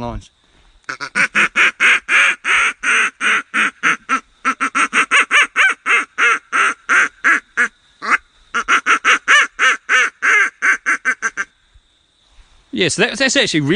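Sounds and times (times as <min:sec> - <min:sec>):
speech: 0:00.0 - 0:01.3, 0:12.8 - 0:13.7
duck call blown as comeback call: 0:00.9 - 0:11.5.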